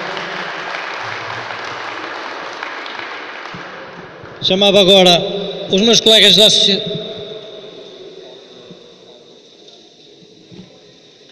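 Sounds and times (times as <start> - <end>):
round of applause: 0.0 - 4.6
speech: 4.4 - 6.9.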